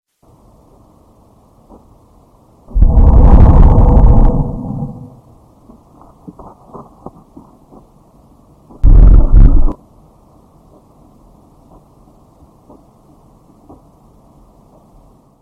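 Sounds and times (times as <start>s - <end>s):
creepy sound: 2.7s - 5.2s.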